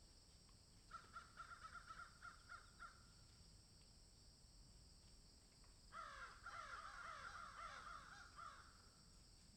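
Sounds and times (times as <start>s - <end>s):
several crows cawing in a field: 0.9s - 3.0s, 6.0s - 8.8s.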